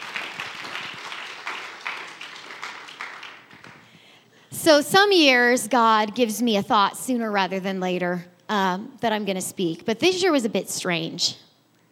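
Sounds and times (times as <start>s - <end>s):
audience applauding: 0.0s - 3.9s
speech: 4.6s - 11.4s.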